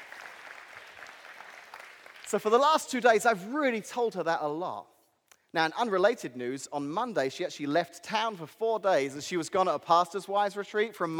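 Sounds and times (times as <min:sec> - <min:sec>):
audience applause: 0:00.0 - 0:02.4
speech: 0:02.3 - 0:04.9, 0:05.5 - 0:11.1.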